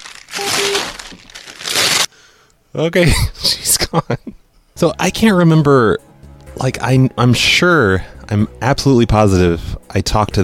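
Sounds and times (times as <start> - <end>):
paper loan documents being ripped into pieces: 0.0 - 2.1
speech: 2.8 - 10.4.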